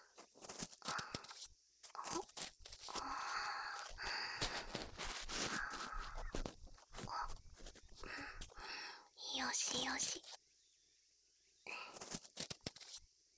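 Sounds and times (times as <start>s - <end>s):
ear pick cleaning right ear: 0.2s - 8.6s, 9.4s - 10.4s, 11.8s - 13.0s.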